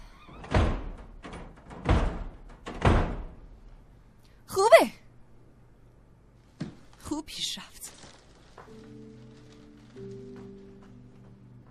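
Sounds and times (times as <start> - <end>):
heavy banging on a door: 0.4 - 3.4.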